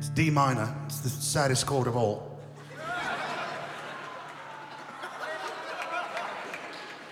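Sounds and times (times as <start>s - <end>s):
speech: 0.2s - 2.3s
laughter: 2.5s - 7.0s
applause: 3.8s - 7.0s.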